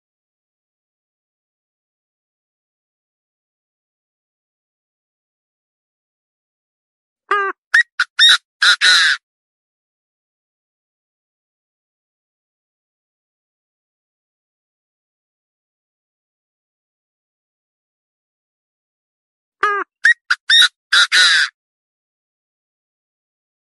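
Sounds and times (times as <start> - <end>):
partridge calling: 7.3 - 9.2, 19.6 - 21.5.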